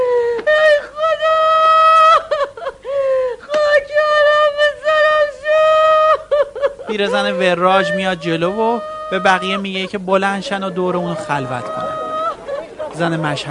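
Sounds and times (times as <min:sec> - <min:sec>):
woman wailing and lamenting: 0:00.0 - 0:13.4
laughter: 0:01.8 - 0:13.4
speech: 0:07.0 - 0:11.8, 0:13.0 - 0:13.4.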